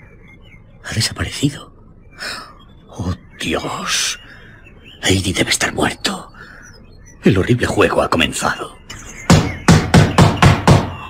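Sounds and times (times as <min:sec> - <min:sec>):
speech: 0:00.8 - 0:02.4, 0:03.0 - 0:04.2, 0:05.0 - 0:06.3, 0:07.2 - 0:08.8
knuckles knocking on front door: 0:09.3 - 0:11.0.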